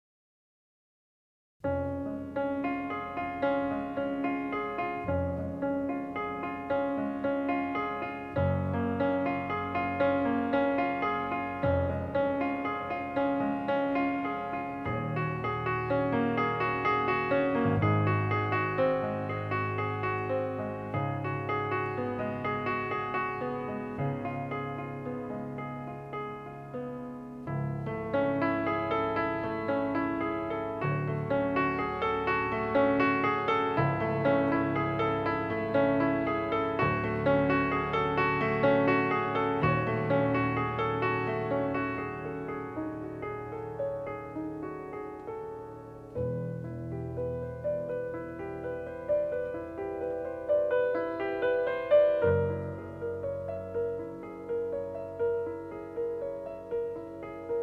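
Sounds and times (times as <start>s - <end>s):
solo piano: 1.6s - 57.6s.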